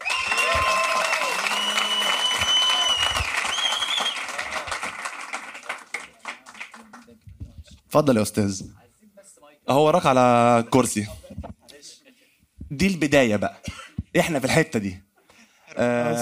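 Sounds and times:
audience applause: 0.0s - 7.1s
speech: 7.9s - 8.8s, 9.7s - 11.2s, 12.7s - 15.0s, 15.8s - 16.2s.

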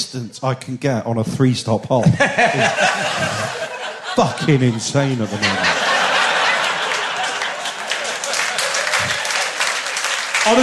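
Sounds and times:
speech: 0.1s - 3.6s, 4.2s - 5.8s, 10.4s - 10.6s
laughter: 2.0s - 10.6s
audience applause: 4.5s - 10.6s.

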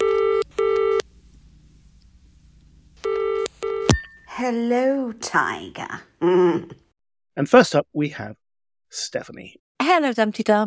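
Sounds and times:
telephone ringing in double-burst pattern: 0.0s - 1.0s, 3.0s - 4.2s
speech: 4.4s - 6.8s, 7.4s - 10.6s.

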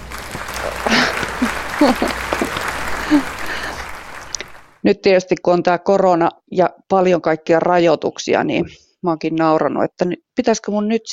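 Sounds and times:
laughter: 0.0s - 4.6s
audience applause: 0.0s - 4.8s
speech: 1.8s - 2.4s, 3.1s - 3.4s, 4.8s - 11.1s.

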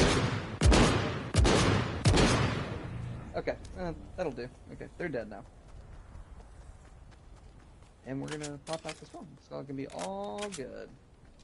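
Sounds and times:
video game gunshots: 0.0s - 3.2s
speech: 3.4s - 5.6s, 8.0s - 11.0s.

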